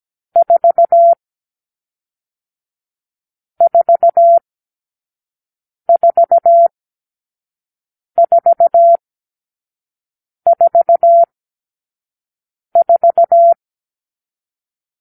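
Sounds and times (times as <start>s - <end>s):
morse code beeps: 0.4s - 1.2s, 3.6s - 4.4s, 5.9s - 6.7s, 8.2s - 9.0s, 10.5s - 11.3s, 12.8s - 13.6s.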